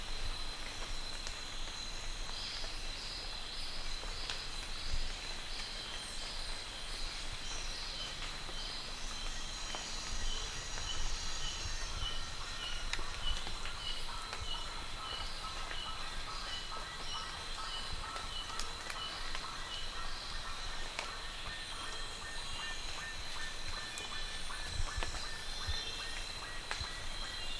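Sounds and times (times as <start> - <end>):
background hiss: 0.0 - 27.5
bird calls: 7.3 - 27.5.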